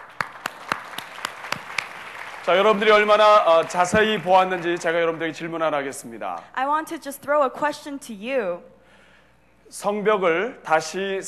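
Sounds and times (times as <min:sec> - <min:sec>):
audience applause: 0:00.0 - 0:05.7
speech: 0:02.4 - 0:08.7, 0:09.7 - 0:11.2.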